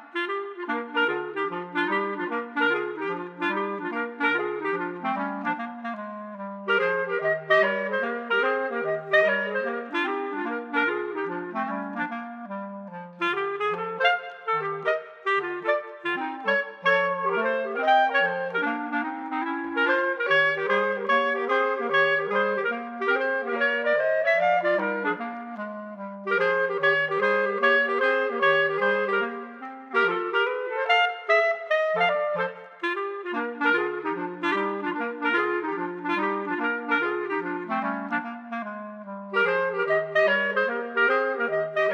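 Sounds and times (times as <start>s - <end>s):
boogie woogie clarinet trio: 0.0s - 41.9s.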